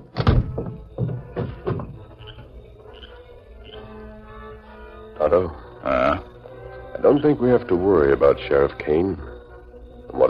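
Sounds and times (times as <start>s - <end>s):
heavy door slamming: 0.1s - 2.1s
softer knocks and rattles: 0.2s - 2.2s
speech: 5.2s - 6.0s, 7.1s - 9.3s.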